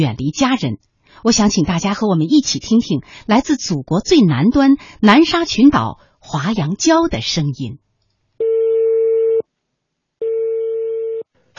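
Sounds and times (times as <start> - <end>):
speech: 0.0 - 7.8
telephone ringback tone: 8.4 - 9.4, 10.2 - 11.2.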